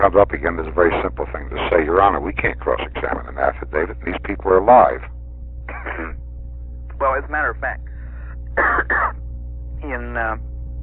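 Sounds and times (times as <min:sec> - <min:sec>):
speech: 0:00.0 - 0:05.2, 0:07.0 - 0:07.9, 0:08.6 - 0:09.2, 0:09.8 - 0:10.5
low steady hum: 0:00.0 - 0:10.8
lawyer clearing throat in court: 0:05.7 - 0:06.2, 0:08.6 - 0:09.2.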